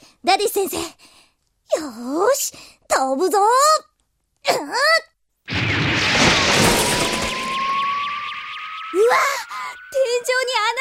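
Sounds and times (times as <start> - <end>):
speech: 0.2 - 6.6, 8.9 - 10.7
explosion: 5.5 - 10.0.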